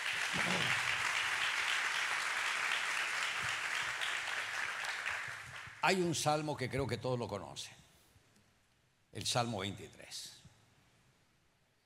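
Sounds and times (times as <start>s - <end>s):
audience applause: 0.0s - 5.8s
speech: 5.8s - 7.8s, 9.2s - 10.4s.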